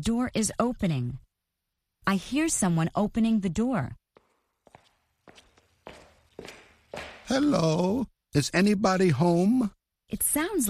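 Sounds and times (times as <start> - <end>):
speech: 0.0 - 1.2, 2.0 - 4.0, 6.4 - 10.6
footsteps of someone walking: 4.1 - 7.6.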